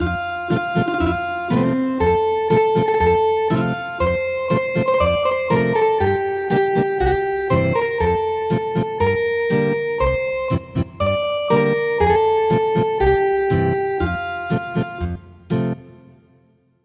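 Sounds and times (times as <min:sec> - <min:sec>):
ethnic guitar music: 0:00.0 - 0:15.8.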